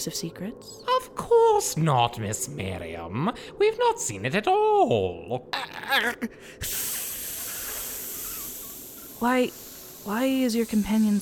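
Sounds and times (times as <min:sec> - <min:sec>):
speech: 0:00.0 - 0:07.0, 0:09.2 - 0:11.2
person hissing through their teeth: 0:06.6 - 0:10.8.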